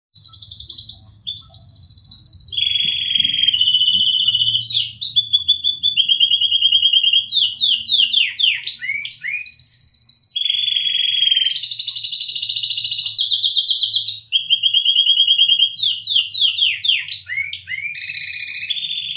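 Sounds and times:
canary song: 0.2 - 19.1.

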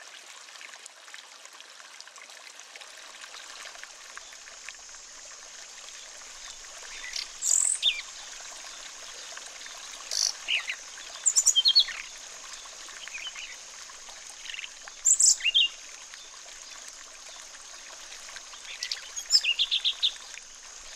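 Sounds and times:
running water: 0.0 - 20.9
Sulingan bird calling: 10.1 - 12.0.

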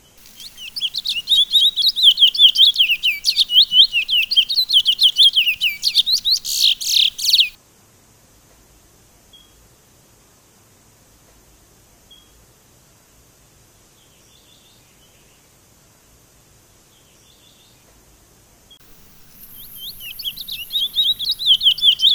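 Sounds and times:
Sunda laughingthrush song of quick high-pitched slurred chirps: 0.0 - 7.6, 18.8 - 22.1.

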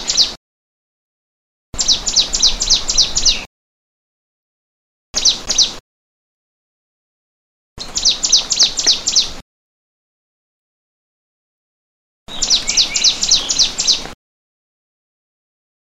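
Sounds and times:
prenjak lumut bird calling: 0.0 - 0.4, 1.8 - 3.5, 5.2 - 5.8, 7.8 - 9.4, 12.3 - 14.2.

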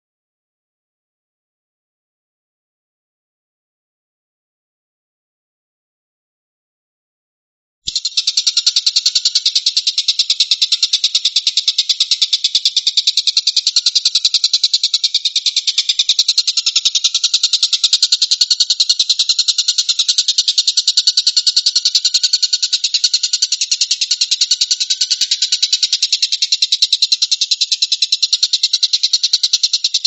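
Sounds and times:
stork-billed kingfisher rattling call: 7.9 - 30.0.

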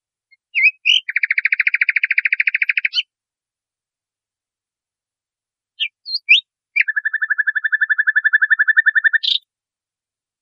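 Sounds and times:
nightingale singing: 0.3 - 3.1, 5.8 - 9.5.

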